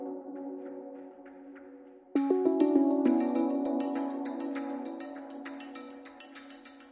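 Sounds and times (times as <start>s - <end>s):
high percussion lead motif: 2.2s - 6.8s.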